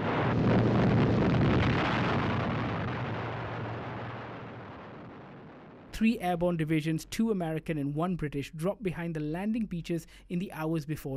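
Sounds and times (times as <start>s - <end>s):
bomb explosions destroying a bridge: 0.0s - 6.5s
speech: 6.0s - 11.1s.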